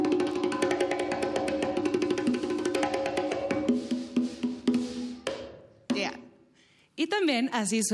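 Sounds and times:
percussion section of a band playing: 0.0s - 6.3s
speech: 7.1s - 7.9s.

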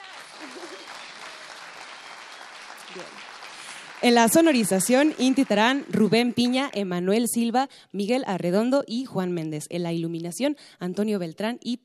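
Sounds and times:
laughter: 0.0s - 1.5s
audience applause: 0.0s - 6.4s
speech: 2.9s - 3.3s, 4.0s - 11.8s.

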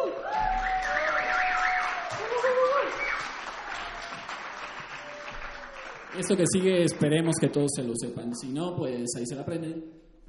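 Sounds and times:
audience applause: 0.4s - 7.6s
speech: 6.2s - 10.0s.

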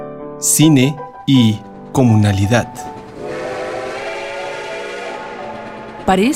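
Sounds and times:
speech: 0.4s - 3.0s, 6.1s - 6.3s
steam train rumbling rail noise: 0.4s - 6.3s
steam train whistle: 3.1s - 6.3s.

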